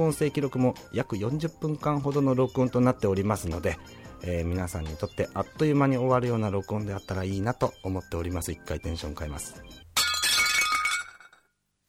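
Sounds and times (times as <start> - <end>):
speech: 0.0 - 9.8
plate breaking: 10.0 - 11.5.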